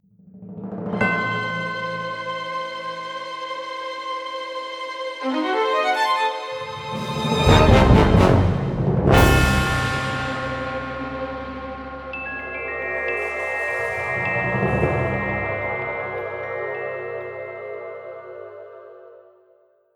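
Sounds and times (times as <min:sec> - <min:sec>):
spooky sound: 0:05.2 - 0:19.5.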